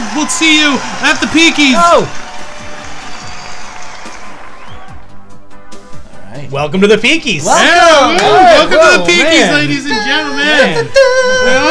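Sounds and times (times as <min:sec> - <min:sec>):
crowd cheering wildly: 0:00.0 - 0:05.2, 0:07.4 - 0:09.2
speech: 0:00.2 - 0:02.3, 0:06.5 - 0:11.7.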